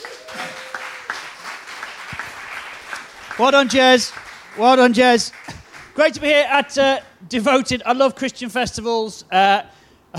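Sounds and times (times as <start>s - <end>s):
crowd applauding: 0.0s - 6.2s
speech: 3.4s - 5.4s, 6.0s - 9.8s.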